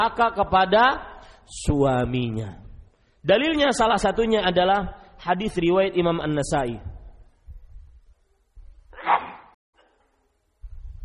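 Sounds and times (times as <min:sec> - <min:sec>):
speech: 0:00.0 - 0:02.6, 0:03.2 - 0:06.9
person sneezing: 0:09.0 - 0:09.5.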